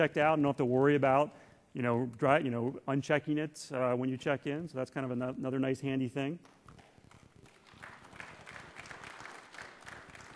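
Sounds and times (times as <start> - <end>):
speech: 0.0 - 6.6
audience clapping: 6.4 - 10.3.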